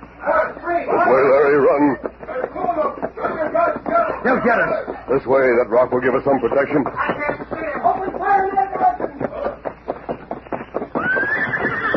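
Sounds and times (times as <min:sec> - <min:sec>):
hooves clopping: 0:00.0 - 0:11.9
laughter: 0:01.1 - 0:05.3
speech: 0:04.2 - 0:07.4
horse whinnying: 0:10.9 - 0:11.9.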